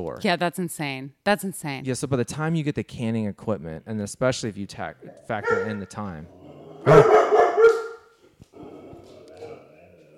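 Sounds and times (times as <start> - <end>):
speech: 0.0 - 7.4
dog barking: 5.4 - 5.9, 6.8 - 8.1.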